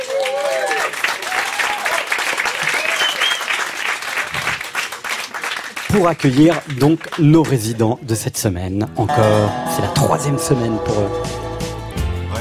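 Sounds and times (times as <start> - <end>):
studio audience whooping and shouting: 0.0 - 3.4
studio audience applauding: 0.0 - 7.8
speech: 5.9 - 11.4.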